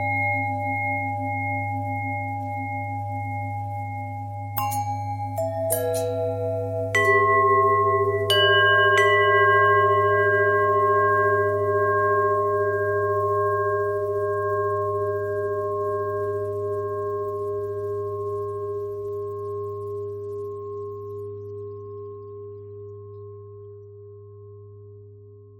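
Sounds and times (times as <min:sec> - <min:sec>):
long pentatonic bell tones: 0:00.0 - 0:18.9.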